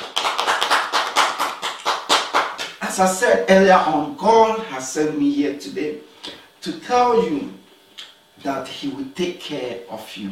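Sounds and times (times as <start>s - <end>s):
audience clapping: 0.0s - 2.8s
speech: 3.0s - 7.6s, 8.4s - 10.3s.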